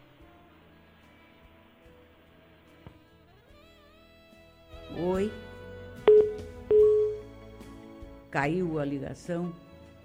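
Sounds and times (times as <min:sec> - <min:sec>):
speech: 0:05.0 - 0:05.5, 0:08.4 - 0:09.6
phone line beeps after a dropped call: 0:06.1 - 0:07.3.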